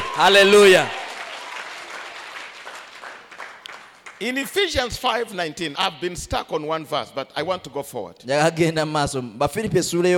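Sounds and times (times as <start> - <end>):
congregation clapping during a church service: 0.0 - 5.0
speech: 0.2 - 1.0, 4.2 - 10.1.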